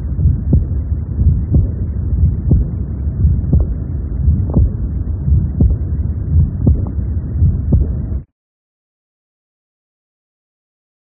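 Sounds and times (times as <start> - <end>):
aortic regurgitation heart murmur: 0.0 - 8.2.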